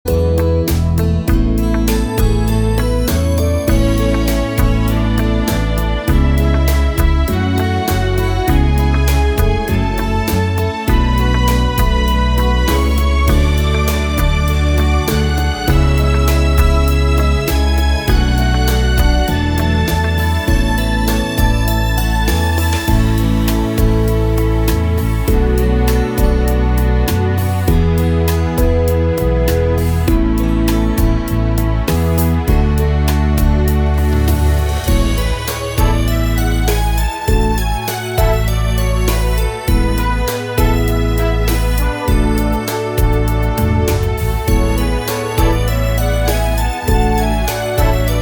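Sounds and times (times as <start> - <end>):
rumba music: 0.0 - 48.2.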